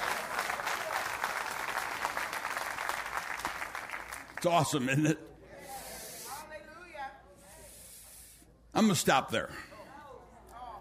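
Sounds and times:
audience clapping: 0.0 - 4.9
speech: 4.4 - 5.3, 8.8 - 9.7.

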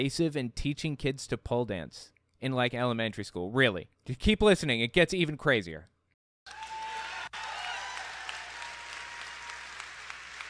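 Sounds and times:
speech: 0.0 - 5.9
crowd cheering: 6.5 - 10.4.

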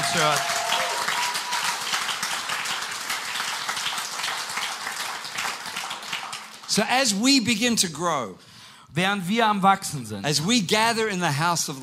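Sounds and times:
audience applause: 0.0 - 6.9
speech: 0.1 - 0.6, 6.8 - 11.8.

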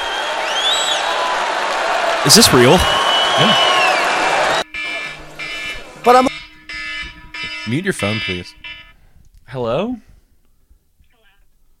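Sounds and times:
rally crowd applauding and cheering: 0.0 - 4.6
speech: 2.2 - 3.7, 6.0 - 6.3, 7.7 - 8.8, 9.5 - 10.1.

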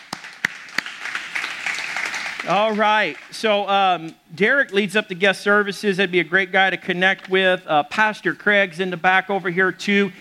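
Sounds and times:
audience applause: 0.0 - 3.4
speech: 2.4 - 10.1.

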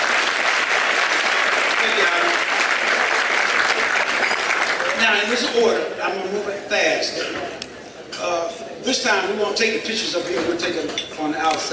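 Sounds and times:
audience applause: 0.0 - 5.4
speech: 5.0 - 7.6, 8.2 - 11.7.

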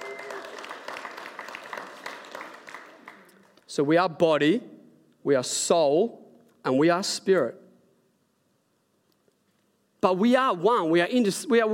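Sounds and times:
crowd applauding: 0.0 - 3.6
speech: 3.7 - 7.6, 10.0 - 11.7.

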